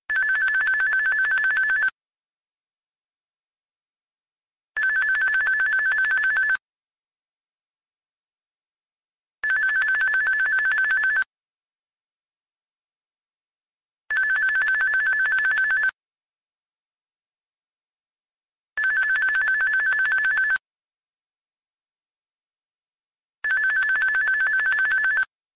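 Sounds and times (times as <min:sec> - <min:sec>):
Nextel phone ringtone: 0:00.1 - 0:02.0, 0:04.8 - 0:06.6, 0:09.4 - 0:11.3, 0:14.1 - 0:16.0, 0:18.8 - 0:20.6, 0:23.4 - 0:25.3.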